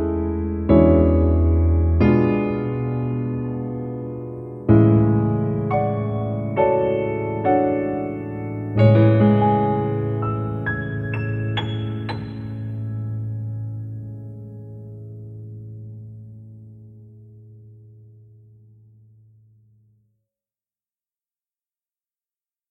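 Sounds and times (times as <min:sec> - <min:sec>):
musical accompaniment: 0:00.0 - 0:15.5.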